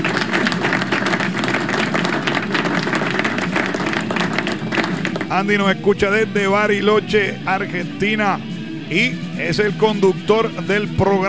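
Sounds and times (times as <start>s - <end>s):
crowd applause: 0.0s - 5.4s
speech: 5.3s - 11.2s.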